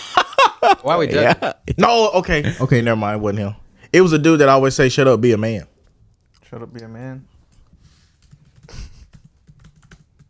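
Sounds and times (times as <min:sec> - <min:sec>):
speech: 0:00.6 - 0:05.7, 0:06.5 - 0:07.3
rapid typing on a computer keyboard: 0:08.1 - 0:10.2.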